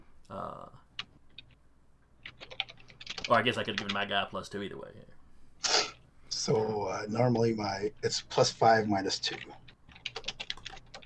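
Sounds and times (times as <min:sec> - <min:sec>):
typing on a computer keyboard: 0:00.9 - 0:01.6, 0:02.2 - 0:04.1, 0:09.0 - 0:11.0
speech: 0:03.3 - 0:05.2, 0:06.4 - 0:09.6.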